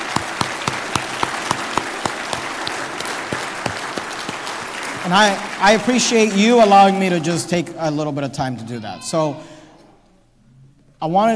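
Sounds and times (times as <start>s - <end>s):
audience applause: 0.0s - 7.4s
speech: 5.0s - 9.6s, 11.0s - 11.3s.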